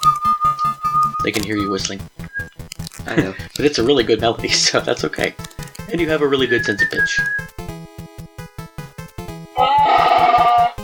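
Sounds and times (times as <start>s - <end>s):
plucked rhythmic tune: 0.0s - 10.8s
speech: 1.2s - 2.2s, 3.1s - 7.4s
person imitating a Wookiee roar: 9.6s - 10.8s.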